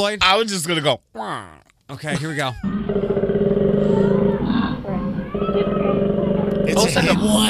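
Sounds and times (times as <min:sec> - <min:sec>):
speech: 0:00.0 - 0:04.1, 0:06.8 - 0:07.4
koalas fighting: 0:02.6 - 0:07.4.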